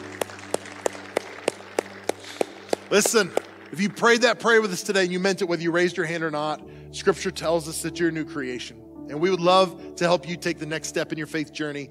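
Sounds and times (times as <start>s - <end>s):
sharp claps: 0.0s - 4.3s
speech: 2.9s - 11.9s.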